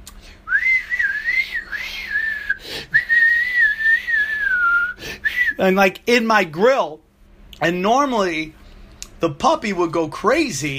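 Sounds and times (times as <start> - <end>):
person whistling to imitate aggressive flute playing: 0.5 - 5.6
speech: 5.6 - 7.0, 7.6 - 8.6, 9.2 - 10.7.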